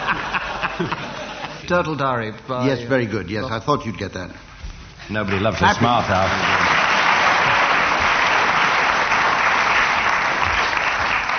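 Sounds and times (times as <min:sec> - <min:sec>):
laughter: 0:00.0 - 0:01.7
speech: 0:00.8 - 0:01.0, 0:01.7 - 0:04.5, 0:05.1 - 0:06.6
audience applause: 0:05.2 - 0:11.3.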